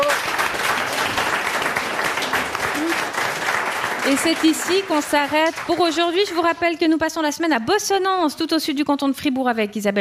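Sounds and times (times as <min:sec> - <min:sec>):
audience applause: 0:00.0 - 0:06.4
speech: 0:04.1 - 0:09.9.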